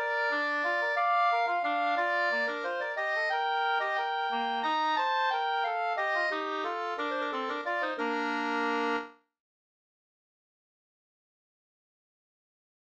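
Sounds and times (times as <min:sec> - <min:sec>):
waltz in two parts: 0:00.0 - 0:09.2.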